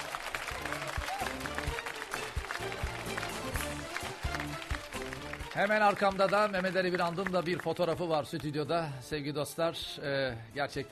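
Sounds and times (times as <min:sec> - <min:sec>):
studio audience applause: 0:00.0 - 0:08.6
speech: 0:05.6 - 0:10.9.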